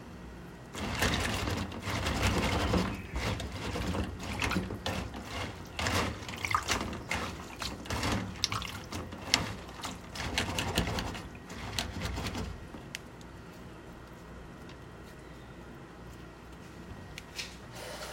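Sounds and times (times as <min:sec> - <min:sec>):
cabbage being shredded: 0:00.7 - 0:12.7.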